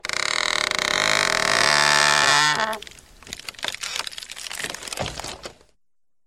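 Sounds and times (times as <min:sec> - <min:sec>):
tree creaking: 0:00.0 - 0:05.6.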